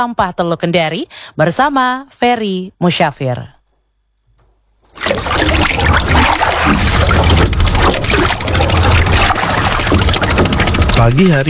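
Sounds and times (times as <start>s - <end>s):
speech: 0.0s - 3.6s, 5.0s - 7.4s, 11.0s - 11.4s
water splashing around a small boat on bay water: 4.9s - 11.2s.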